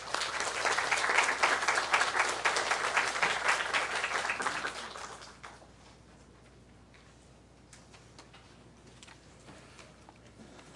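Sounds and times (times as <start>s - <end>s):
audience applause welcoming speaker: 0.0s - 5.6s.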